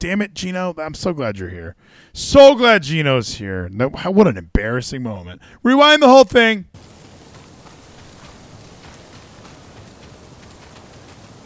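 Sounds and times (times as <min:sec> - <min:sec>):
speech: 0:00.0 - 0:06.9
constant rain-like hiss: 0:06.8 - 0:11.4
video game character footsteps: 0:06.8 - 0:11.4.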